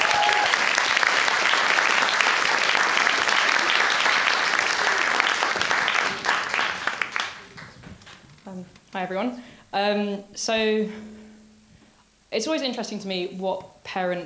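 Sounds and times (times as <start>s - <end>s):
audience applause: 0.0s - 8.2s
speech: 9.0s - 11.1s, 12.3s - 14.2s.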